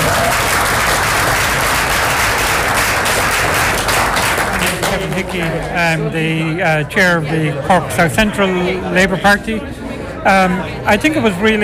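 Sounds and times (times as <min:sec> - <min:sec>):
audience applause: 0:00.0 - 0:05.7
speech: 0:05.2 - 0:11.6.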